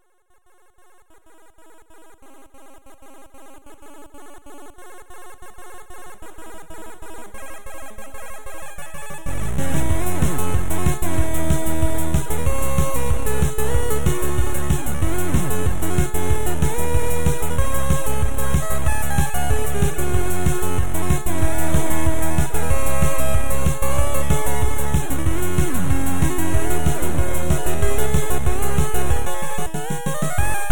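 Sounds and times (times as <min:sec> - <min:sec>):
chiptune music bed: 0:09.2 - 0:30.7.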